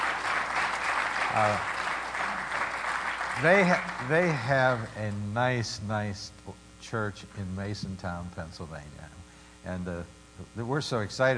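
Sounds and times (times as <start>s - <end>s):
audience applause in church: 0.0s - 4.9s
speech: 1.3s - 1.8s, 3.4s - 11.3s.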